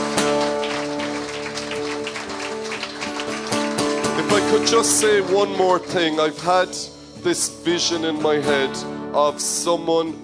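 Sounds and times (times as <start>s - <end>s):
round of applause: 0.0s - 6.0s
speech: 4.6s - 10.2s.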